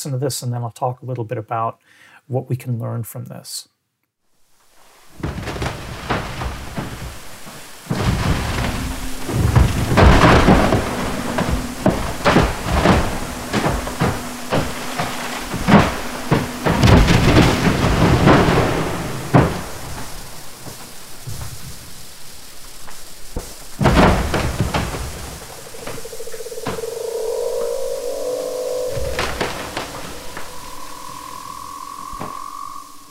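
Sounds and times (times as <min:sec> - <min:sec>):
speech: 0:00.0 - 0:03.7
steady crackling fizz of glacier ice: 0:04.5 - 0:33.0
glacier ice calving, cracks and rumbles above and below water: 0:05.1 - 0:22.0, 0:22.8 - 0:31.4
softer warbling tonal sound: 0:07.8 - 0:20.7, 0:24.1 - 0:33.0.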